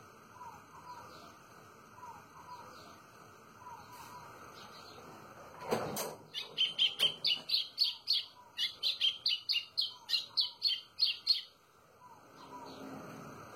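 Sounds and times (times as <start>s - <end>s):
white-throated seedeater song: 0.3s - 5.1s, 6.3s - 12.9s.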